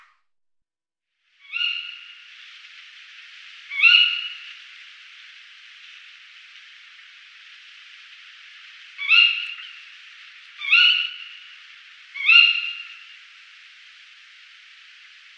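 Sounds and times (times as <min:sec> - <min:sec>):
tawny owl hooting: 0:01.4 - 0:02.2, 0:03.7 - 0:04.6, 0:08.6 - 0:13.2.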